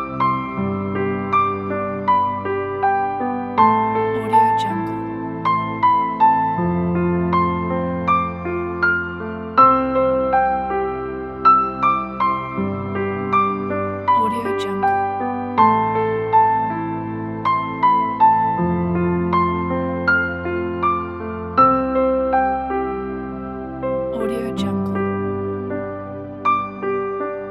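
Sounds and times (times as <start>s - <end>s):
romantic piano music: 0.0s - 27.5s
atmospheric background: 4.1s - 5.2s, 14.1s - 15.2s, 24.2s - 25.2s.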